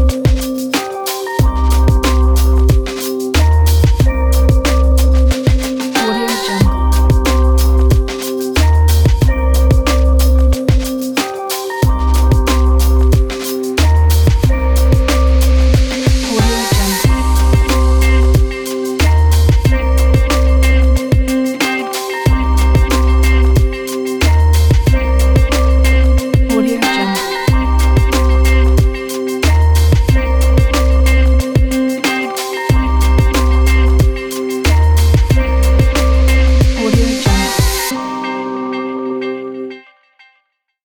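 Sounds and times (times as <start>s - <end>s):
fashion minimal hip hop music: 0.0s - 40.2s.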